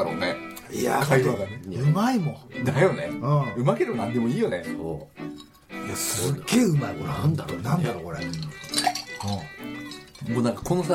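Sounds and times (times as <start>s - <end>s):
speech: 0.7s - 9.6s, 10.2s - 10.9s
ice cubes clinking in a glass: 8.2s - 10.4s.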